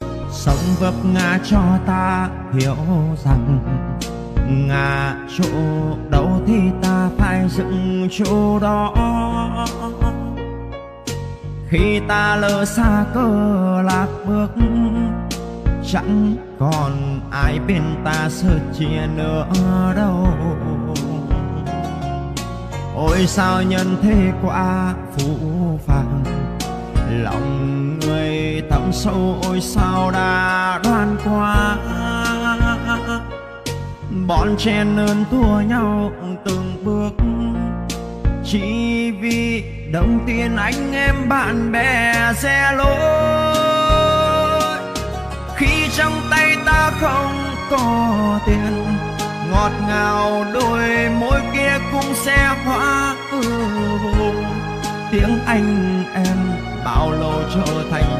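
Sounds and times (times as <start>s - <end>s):
song: 0.0s - 58.1s.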